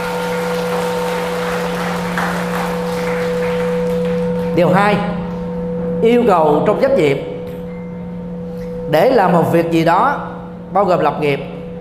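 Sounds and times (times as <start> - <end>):
audience applause: 0.0 - 4.6
constant electrical hum: 0.0 - 11.7
speech: 4.6 - 5.2, 6.0 - 7.3, 8.9 - 11.5.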